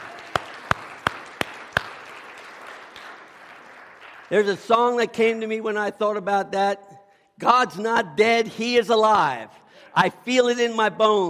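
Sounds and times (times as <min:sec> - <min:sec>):
audience clapping: 0:00.0 - 0:05.4
speech: 0:04.3 - 0:11.2.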